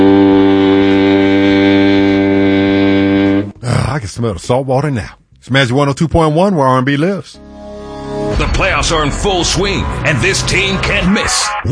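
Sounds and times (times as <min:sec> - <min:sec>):
boat horn: 0:00.0 - 0:03.6
speech: 0:04.1 - 0:07.4, 0:08.4 - 0:11.7.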